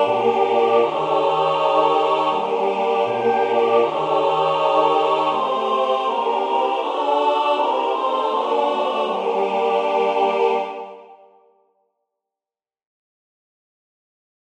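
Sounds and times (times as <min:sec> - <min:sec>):
funeral dirge played tutti: 0:00.0 - 0:11.0.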